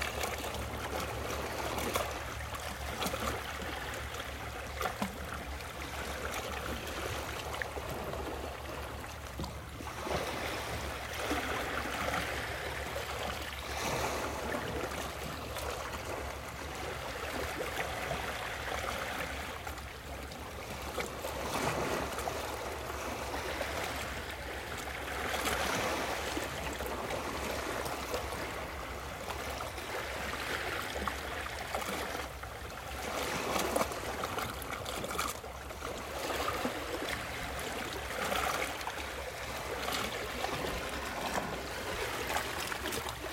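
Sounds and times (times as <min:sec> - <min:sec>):
waves rushing: 0:00.0 - 0:43.3.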